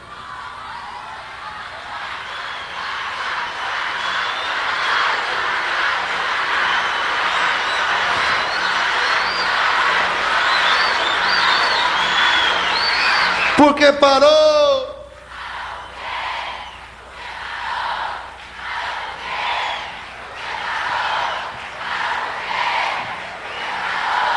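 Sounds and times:
concert audience shouting and cheering: 0.0s - 24.3s
high whistles: 2.2s - 5.4s, 6.5s - 13.8s, 15.6s - 17.0s, 19.3s - 21.6s
speech: 13.8s - 14.4s.

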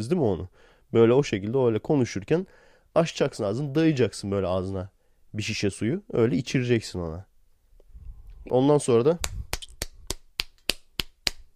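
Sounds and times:
speech: 0.0s - 7.3s, 8.4s - 9.4s
hand clapping: 9.2s - 11.5s.

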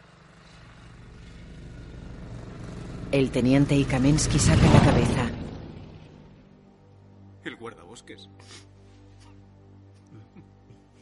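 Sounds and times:
motorcycle driving along a road: 0.0s - 7.0s
speech: 3.1s - 5.3s, 7.6s - 8.7s.

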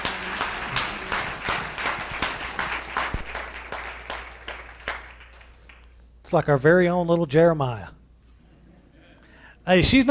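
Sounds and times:
audience clapping: 0.0s - 6.0s
speech: 6.3s - 8.0s, 9.6s - 10.0s.

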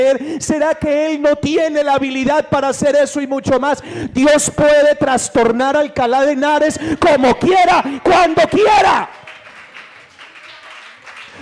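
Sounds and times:
speech: 0.0s - 9.2s
audience applause: 7.8s - 11.3s.

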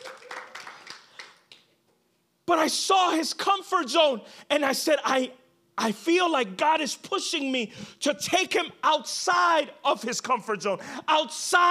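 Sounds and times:
crowd clapping for sound technician: 0.0s - 1.8s
speech: 2.6s - 11.6s.

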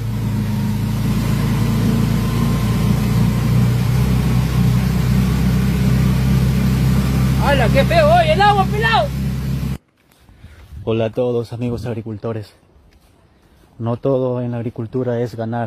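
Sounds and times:
car engine accelerating: 0.0s - 9.8s
speech: 7.7s - 9.2s, 10.9s - 12.6s, 13.8s - 15.6s.

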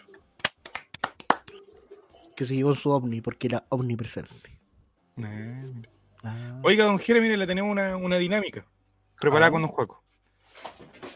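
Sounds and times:
applause: 0.4s - 1.6s
speech: 2.4s - 4.5s, 5.2s - 10.0s.

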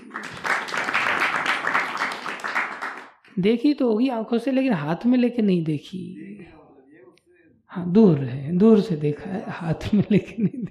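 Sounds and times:
crowd clapping: 0.0s - 3.3s
speech: 3.4s - 6.2s, 7.7s - 10.6s.

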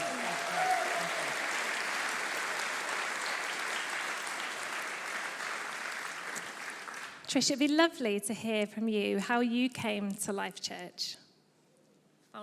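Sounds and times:
round of applause from a crowd: 0.0s - 7.2s
speech: 7.3s - 11.2s.

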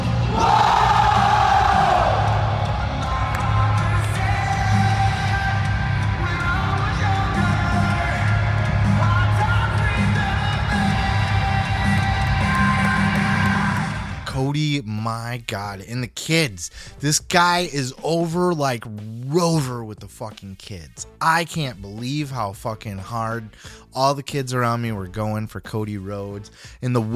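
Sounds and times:
huge arena crowd cheering, whooping and yelling: 0.2s - 14.3s
speech: 15.3s - 27.1s.

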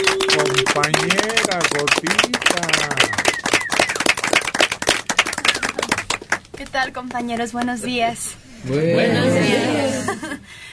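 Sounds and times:
audience applause: 0.0s - 6.7s
speech: 0.8s - 3.4s, 6.6s - 10.7s
laughter: 9.3s - 10.4s.

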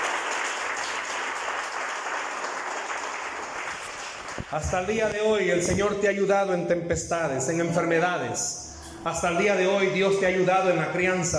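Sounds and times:
audience applause: 0.0s - 5.0s
speech: 4.4s - 11.3s.

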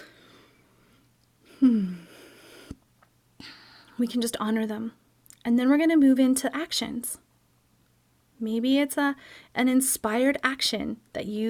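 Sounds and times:
person yawning: 1.5s - 2.1s
speech: 4.0s - 7.2s, 8.4s - 11.4s.

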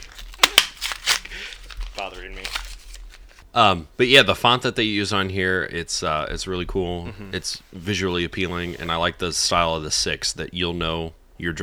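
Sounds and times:
crinkling plastic wrapper of a dog bone being opened: 0.0s - 3.5s
speech: 2.1s - 2.7s, 3.6s - 11.6s.

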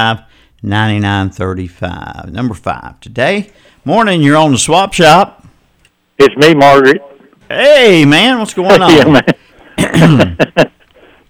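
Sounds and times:
speech: 0.0s - 5.4s, 6.2s - 9.4s, 10.0s - 10.7s
laughter: 8.6s - 11.0s
throat clearing: 9.8s - 10.4s.

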